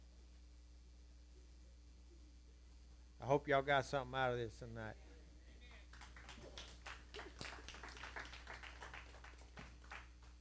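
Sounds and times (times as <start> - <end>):
speech: 3.2 - 5.0
audience clapping: 5.7 - 10.3.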